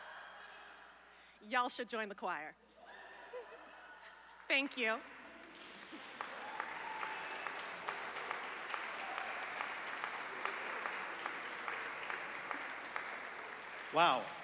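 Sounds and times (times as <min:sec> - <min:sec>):
speech: 0:01.4 - 0:02.7, 0:04.5 - 0:05.2, 0:13.9 - 0:14.4
crowd applauding: 0:04.3 - 0:14.4
cheers and whoops: 0:06.0 - 0:11.5.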